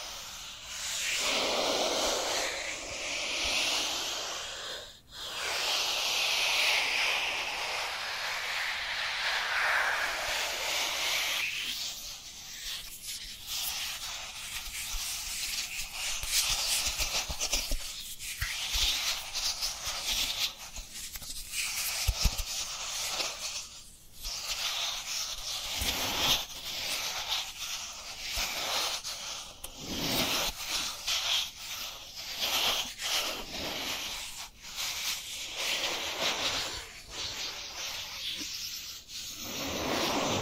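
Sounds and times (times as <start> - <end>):
dry hands rubbing together: 0.0 - 21.2, 21.8 - 40.4.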